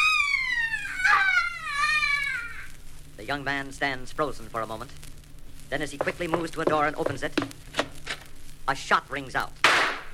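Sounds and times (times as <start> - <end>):
piercing blood-curdling shriek: 0.0 - 2.8
speech: 3.3 - 5.1, 5.7 - 7.8, 8.7 - 9.7.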